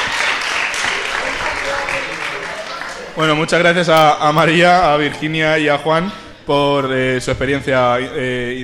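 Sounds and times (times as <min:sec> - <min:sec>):
crowd applauding: 0:00.0 - 0:03.4
faint murmur of voices: 0:00.0 - 0:08.6
speech: 0:03.2 - 0:08.6.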